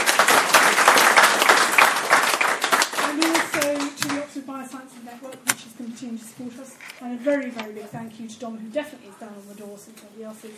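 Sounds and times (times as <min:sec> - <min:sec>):
audience applause: 0:00.0 - 0:04.0
speech: 0:07.2 - 0:10.5.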